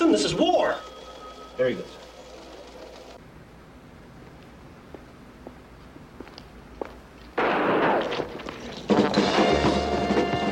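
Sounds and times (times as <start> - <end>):
speech: 0.1 - 1.0, 1.6 - 2.0
gunshots in a wartime scene: 7.4 - 9.6.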